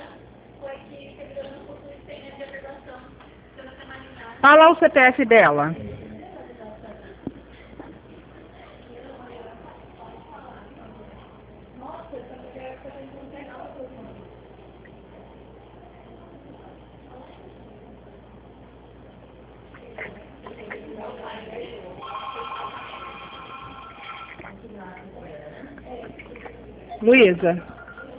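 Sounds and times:
speech: 4.4s - 5.9s, 27.1s - 27.7s
telephone ringing: 22.0s - 24.5s, 27.6s - 28.1s.

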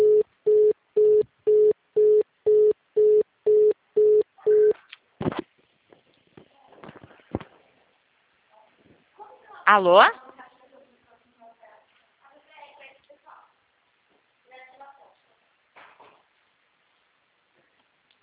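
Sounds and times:
telephone line beeps while a call is transferred: 0.0s - 4.8s
speech: 9.7s - 10.2s.

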